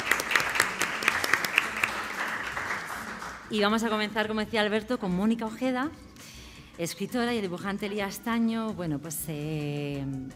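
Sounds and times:
room full of people clapping: 0.0 - 3.7
speech: 3.5 - 6.1, 6.8 - 10.3.

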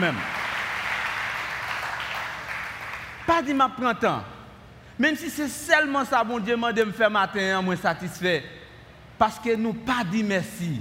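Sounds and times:
speech: 0.0 - 0.4, 3.4 - 4.3, 5.0 - 8.6, 9.2 - 10.7
crowd applauding for sound engineer: 0.0 - 3.3.

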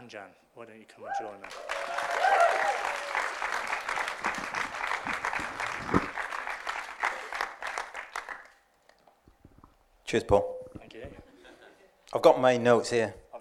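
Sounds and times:
speech: 0.1 - 3.2, 10.1 - 11.2, 12.1 - 13.2
audience applause: 1.4 - 8.6.

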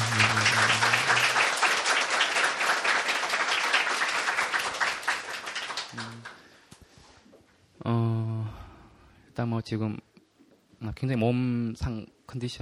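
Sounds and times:
audience applause: 0.0 - 6.4
speech: 9.4 - 10.1, 10.8 - 12.5.

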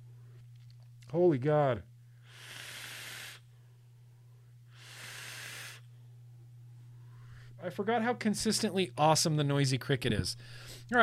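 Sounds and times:
low electrical hum: 0.0 - 11.0
speech: 1.1 - 1.9, 7.6 - 11.0
vape device hissing vapor: 2.2 - 3.5, 4.7 - 5.9.

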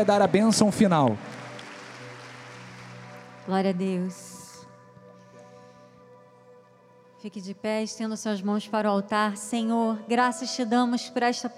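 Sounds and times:
speech: 0.0 - 1.4, 3.5 - 4.4, 7.2 - 11.5
audience applauding: 0.0 - 3.8.

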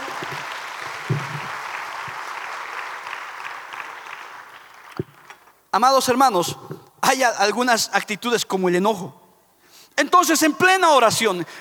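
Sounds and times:
audience applause: 0.0 - 5.5
low thumps: 1.1 - 1.6
speech: 5.8 - 9.2, 10.0 - 11.5.

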